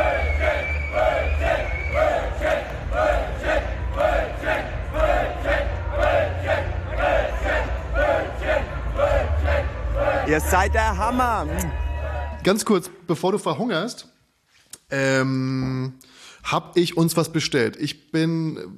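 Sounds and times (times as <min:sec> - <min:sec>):
festival crowd chanting in unison: 0:00.0 - 0:12.4
speech: 0:10.3 - 0:11.8, 0:12.4 - 0:14.1, 0:14.9 - 0:18.7.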